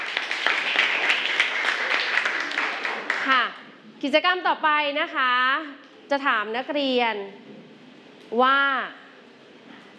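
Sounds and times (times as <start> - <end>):
audience clapping: 0.0 - 3.4
speech: 4.0 - 7.5, 8.3 - 9.0.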